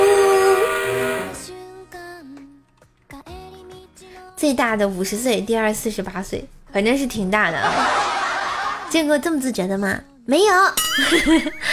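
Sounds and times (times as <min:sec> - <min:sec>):
train whistle sound effect: 0:00.0 - 0:01.6
speech: 0:04.4 - 0:08.1, 0:08.9 - 0:11.7
laughter: 0:07.6 - 0:08.9.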